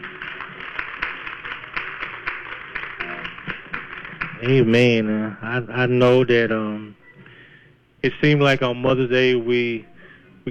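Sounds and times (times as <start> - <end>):
audience clapping hands in praise: 0.0 - 5.2
speech: 4.4 - 7.0, 8.0 - 9.9.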